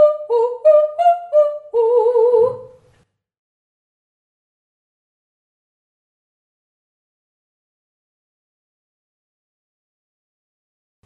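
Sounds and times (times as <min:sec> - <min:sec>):
voice singing ascending triads on yoh: 0:00.0 - 0:02.8.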